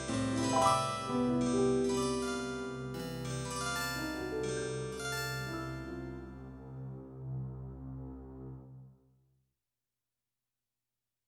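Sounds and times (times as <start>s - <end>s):
harpsichord playing: 0.0s - 6.4s.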